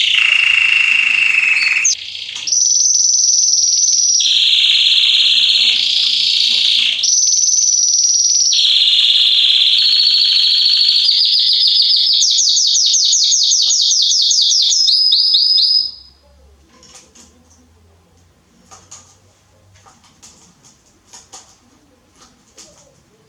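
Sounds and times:
Belgian canary trilling song: 0.0s - 16.2s
faint chirps: 0.0s - 16.4s.

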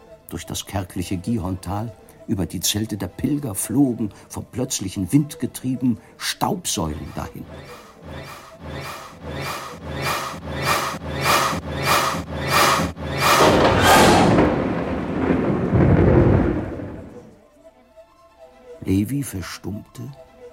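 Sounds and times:
speech: 0.3s - 8.2s, 19.1s - 20.2s
rhythmic crackling pulses: 7.0s - 17.3s
thunder rumbling from an approaching thunderstorm: 11.5s - 17.4s.

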